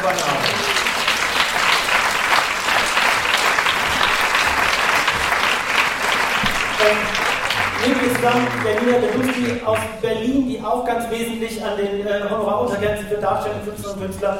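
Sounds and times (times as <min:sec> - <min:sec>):
speech: 0:00.0 - 0:00.5, 0:07.8 - 0:14.3
audience applause: 0:00.0 - 0:09.9.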